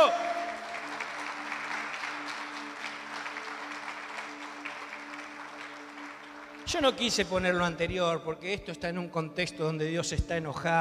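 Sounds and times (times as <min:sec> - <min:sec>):
audience applause: 0:00.0 - 0:07.4
speech: 0:06.7 - 0:10.7.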